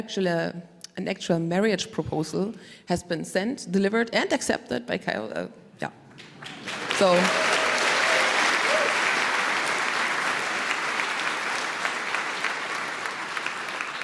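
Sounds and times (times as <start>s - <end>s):
speech: 0.0s - 7.5s
audience applauding in congratulation: 6.2s - 14.0s.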